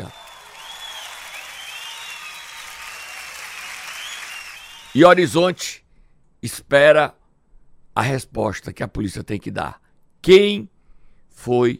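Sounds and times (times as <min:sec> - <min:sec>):
faint high whistling tones: 0:00.0 - 0:05.1
crowd applauding: 0:00.0 - 0:05.2
speech: 0:05.0 - 0:05.8, 0:06.4 - 0:07.2, 0:08.0 - 0:10.7, 0:11.4 - 0:11.7.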